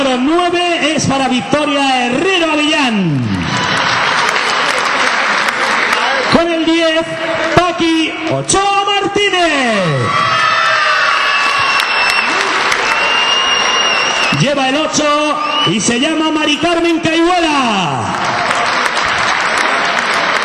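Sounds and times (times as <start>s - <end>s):
speech: 0.1s - 3.8s, 8.3s - 10.4s, 14.4s - 18.4s
audience applause: 3.0s - 7.6s, 10.2s - 14.4s, 17.9s - 20.4s.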